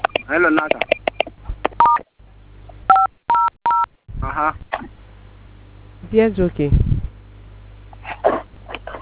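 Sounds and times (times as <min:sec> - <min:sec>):
telephone keypad tones dialing star 500: 0:00.0 - 0:02.0
faint hum: 0:00.0 - 0:09.0
speech: 0:00.3 - 0:01.0, 0:04.4 - 0:05.0, 0:06.1 - 0:06.9.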